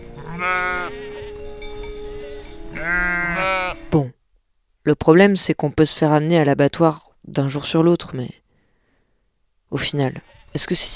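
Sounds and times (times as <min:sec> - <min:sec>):
sheep bleating: 0:00.0 - 0:04.0, 0:09.7 - 0:10.9
speech: 0:00.4 - 0:01.0, 0:04.9 - 0:08.4, 0:09.7 - 0:10.9.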